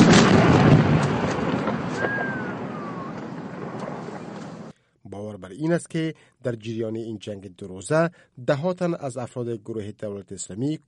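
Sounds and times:
heavy weapons artillery fire: 0.0 - 4.7
speech: 5.4 - 10.8.

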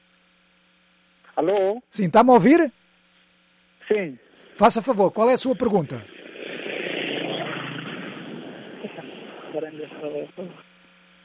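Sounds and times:
speech: 1.4 - 2.8, 3.9 - 6.2, 9.7 - 10.7
car passing in the street over a phone line: 6.1 - 9.6.

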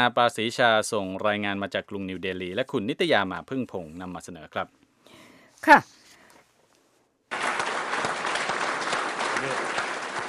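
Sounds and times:
speech: 0.0 - 4.8, 5.6 - 6.0
scientists clapping: 7.3 - 10.2.

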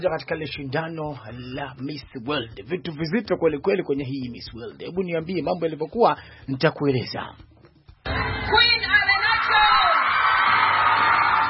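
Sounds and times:
speech: 0.0 - 7.5
crowd cheering for the Miss World pageant winner: 8.1 - 8.6, 9.2 - 11.4.

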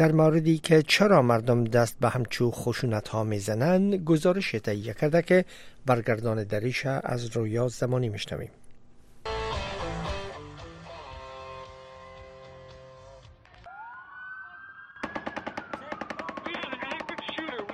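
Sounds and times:
speech: 0.0 - 8.6
rapid gunfire from a shooting: 15.0 - 17.7.

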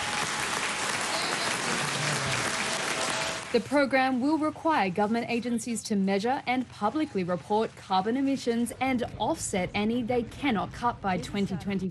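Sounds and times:
applause in parliament: 0.0 - 3.6
speech: 3.5 - 11.8.

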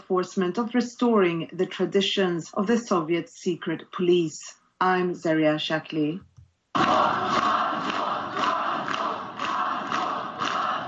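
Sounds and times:
speech: 0.1 - 7.4
large crowd roaring and chanting outside a jail: 6.7 - 10.8.

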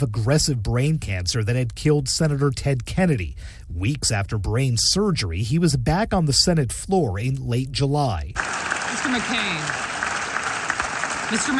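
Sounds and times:
speech: 0.0 - 9.8, 11.3 - 11.5
senators applauding: 8.4 - 11.5.

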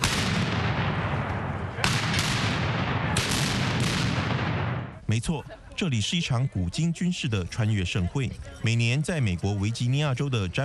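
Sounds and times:
cannon fire from 17th-century and Revolutionary War artillery at reenactment in Virginia: 0.0 - 5.0
speech: 5.1 - 10.6.

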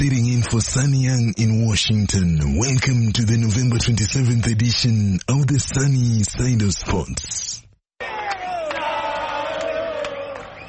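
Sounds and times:
speech: 0.0 - 7.6
Argentine football fans chanting to serenade Diego Maradona: 8.0 - 10.6.

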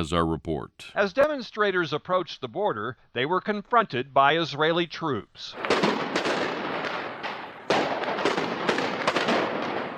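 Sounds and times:
speech: 0.0 - 6.0
tear gas canisters and rubber bullets being fired: 5.6 - 9.9.

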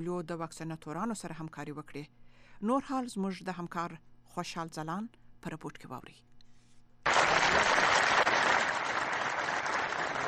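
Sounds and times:
speech: 0.0 - 6.3
applause from a large gathering at a polio vaccination meeting in Farah: 7.1 - 10.2.

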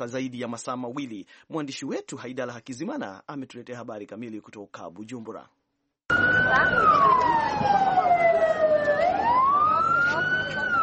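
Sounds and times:
speech: 0.0 - 5.6, 6.5 - 8.3
faint traffic: 6.1 - 10.8
police fire engine sirens at a shop fire in central Bujumbura: 6.1 - 10.8.

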